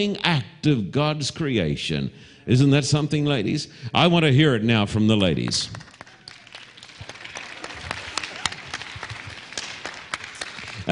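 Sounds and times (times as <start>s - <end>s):
speech: 0.0s - 5.9s
audience clapping: 5.2s - 10.9s.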